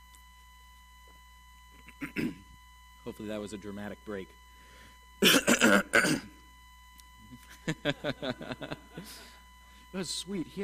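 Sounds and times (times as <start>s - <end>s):
person coughing and clearing throat: 1.8s - 2.5s, 5.2s - 6.4s
speech: 3.1s - 4.4s, 5.2s - 6.4s, 7.7s - 10.6s
laughter: 7.4s - 9.4s.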